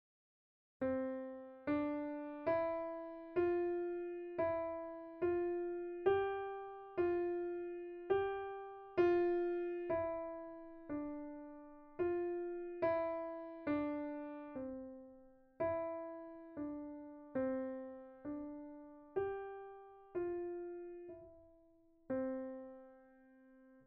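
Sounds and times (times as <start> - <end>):
piano: 0.8 - 23.8.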